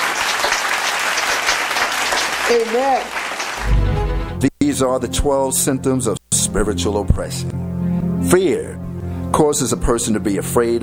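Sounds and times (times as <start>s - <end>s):
church congregation clapping during a worship service: 0.0s - 4.3s
speech: 2.5s - 3.7s, 4.4s - 10.8s.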